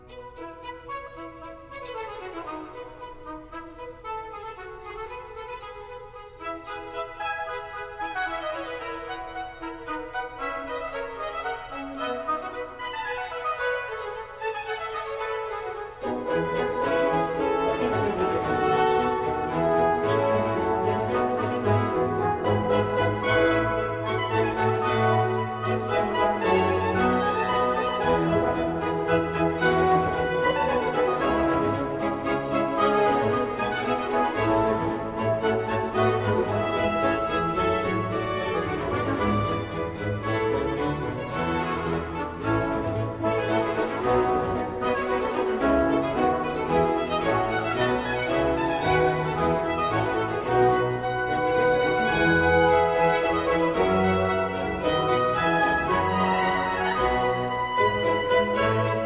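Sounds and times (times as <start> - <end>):
17th-century music: 0.0 - 59.0.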